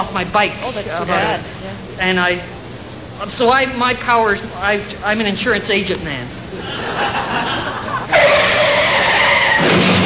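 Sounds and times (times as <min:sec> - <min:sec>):
speech: 0:00.0 - 0:02.5, 0:03.2 - 0:07.5
laughter: 0:06.5 - 0:09.2
Valiant car tires squealing in a parking lot collision: 0:08.1 - 0:10.0.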